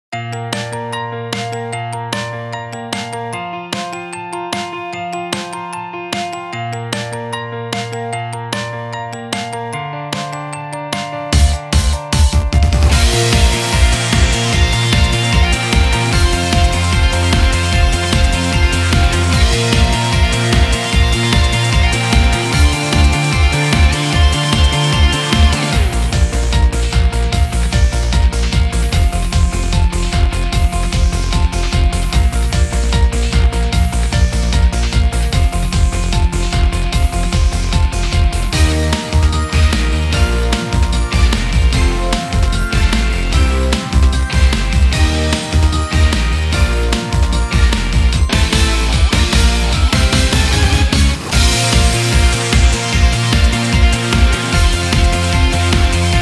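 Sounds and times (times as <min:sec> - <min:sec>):
instrumental music: 0:00.1 - 0:56.2.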